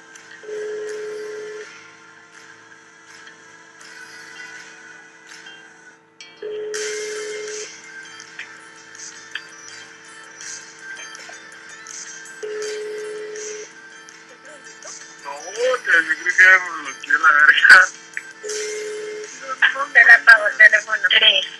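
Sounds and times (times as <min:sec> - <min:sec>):
low-pitched ringback tones over a phone line: 0:00.4 - 0:01.9, 0:06.3 - 0:08.6, 0:09.4 - 0:21.5.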